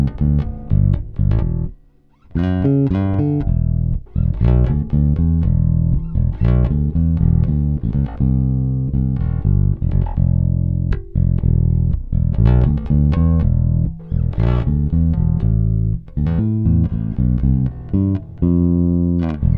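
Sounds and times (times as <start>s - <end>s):
fingerstyle guitar through pickups: 0.0s - 19.5s.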